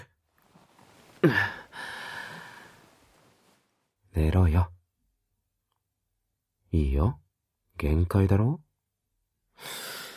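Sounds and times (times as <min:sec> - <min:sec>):
tired person yawning: 0:01.2 - 0:01.7
speech: 0:04.2 - 0:04.8, 0:06.8 - 0:07.2, 0:07.8 - 0:08.6.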